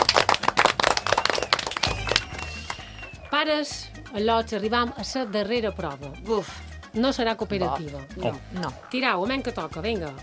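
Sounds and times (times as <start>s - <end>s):
loud applause: 0.0s - 3.4s
speech: 3.4s - 10.2s.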